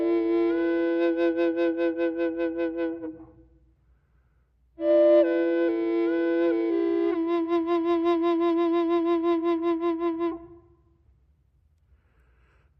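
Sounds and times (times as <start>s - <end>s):
drone flute in F without effects: 0.0s - 3.4s, 4.8s - 10.6s.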